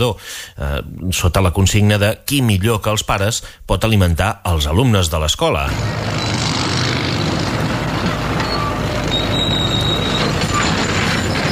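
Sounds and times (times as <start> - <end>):
speech: 0.0 - 6.6
roadworks asphalt paving machinery in Palamós: 5.7 - 11.4.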